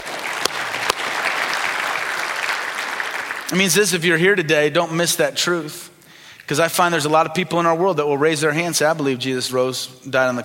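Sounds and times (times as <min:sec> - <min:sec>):
audience clapping: 0:00.0 - 0:04.0
speech: 0:03.5 - 0:05.9, 0:06.5 - 0:10.4.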